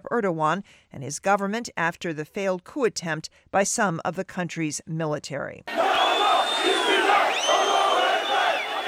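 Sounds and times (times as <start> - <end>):
speech: 0.1 - 6.0
crowd chanting at a late-night rally: 5.7 - 8.8.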